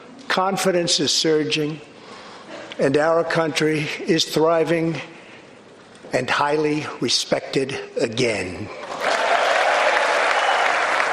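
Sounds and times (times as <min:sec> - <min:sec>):
speech: 0:00.4 - 0:01.9, 0:02.8 - 0:05.1, 0:06.1 - 0:08.8
Republican lawmakers applauding in the Capitol chamber: 0:08.9 - 0:11.1.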